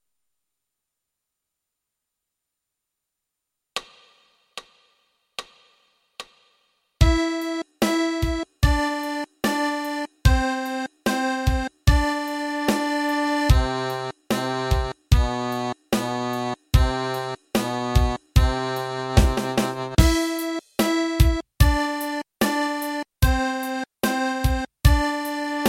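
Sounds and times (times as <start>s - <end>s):
accordion playing a refrain: 7.0s - 25.6s.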